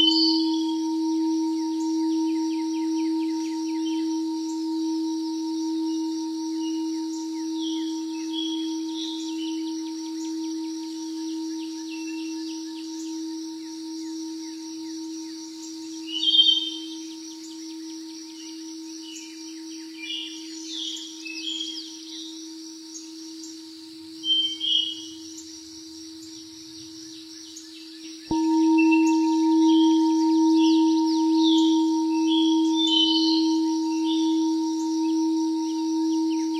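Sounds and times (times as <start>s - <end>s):
singing bowl humming: 0.0s - 36.5s
birds chirping and twittering: 16.1s - 16.8s, 28.3s - 36.5s.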